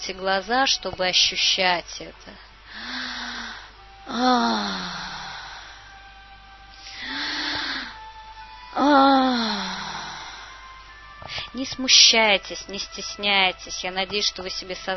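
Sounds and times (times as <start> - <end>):
speech: 0.0 - 2.9, 4.1 - 5.1, 11.5 - 14.9
deep inhales into the belly: 2.3 - 6.0, 6.7 - 8.0, 9.0 - 11.5
voiced exhale as a low moan or sigh: 2.7 - 6.0, 6.8 - 8.0, 8.8 - 10.6.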